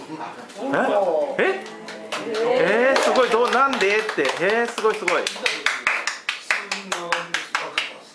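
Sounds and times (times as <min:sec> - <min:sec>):
speech: 0:00.1 - 0:01.7, 0:02.3 - 0:05.7
hand claps: 0:01.6 - 0:08.0.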